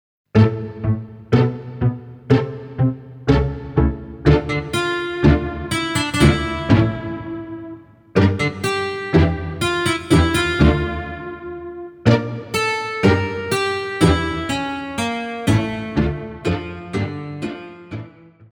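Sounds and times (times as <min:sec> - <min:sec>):
ballet pirouette music: 0:00.4 - 0:18.2.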